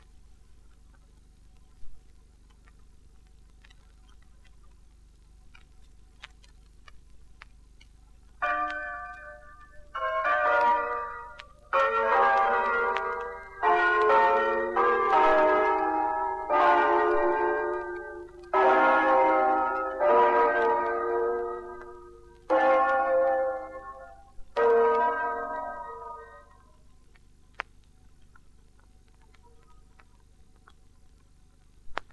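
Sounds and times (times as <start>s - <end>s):
bells ringing: 8.4s - 26.6s.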